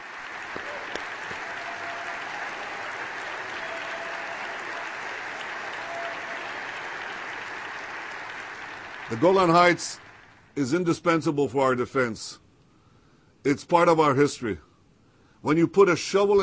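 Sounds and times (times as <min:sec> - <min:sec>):
sustained applause from a large audience: 0:00.0 - 0:10.5
speech: 0:09.1 - 0:10.0, 0:10.6 - 0:12.4, 0:13.4 - 0:14.7, 0:15.4 - 0:16.4.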